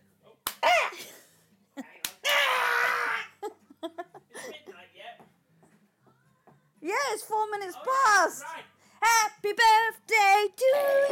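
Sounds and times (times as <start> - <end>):
playful birthday slaps: 0.4 - 0.8, 2.0 - 2.4
people shrieking: 2.2 - 3.3
people laughing: 3.4 - 4.7
speech: 7.1 - 11.1.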